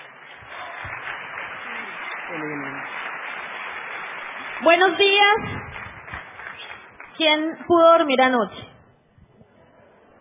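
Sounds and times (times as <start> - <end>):
audience applauding: 0.0 - 7.6
speech: 2.3 - 2.9, 4.6 - 5.6, 7.2 - 8.7.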